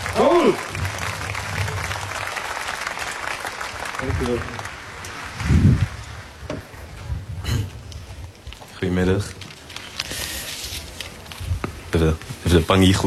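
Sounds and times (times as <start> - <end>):
audience applause welcoming an author onto the stage: 0.0 - 6.4
speech: 0.4 - 0.8, 4.0 - 4.6, 8.8 - 9.5, 11.9 - 13.0.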